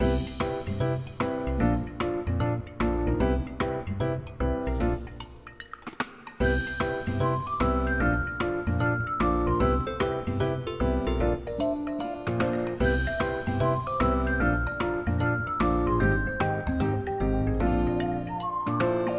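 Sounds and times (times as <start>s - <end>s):
bright medium-tempo music: 0.0s - 19.1s.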